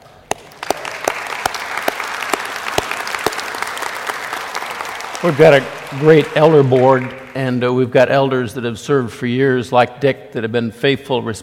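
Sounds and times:
audience applause honoring church elders: 0.3s - 7.7s
speech: 5.2s - 11.4s.

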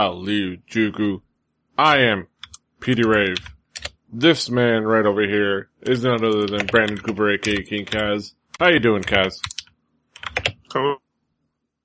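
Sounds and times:
speech: 0.0s - 1.2s, 1.8s - 9.6s, 10.3s - 11.0s
rapid typing on a computer keyboard: 2.4s - 4.0s, 5.8s - 10.7s.

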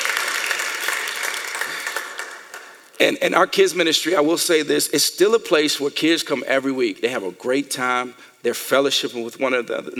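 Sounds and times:
crowd applause: 0.0s - 2.8s
speech: 3.0s - 9.9s.

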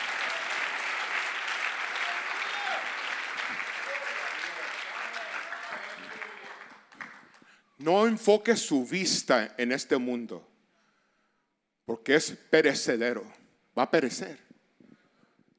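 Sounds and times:
audience applause: 0.0s - 7.4s
speech: 7.8s - 10.5s, 11.9s - 14.4s.

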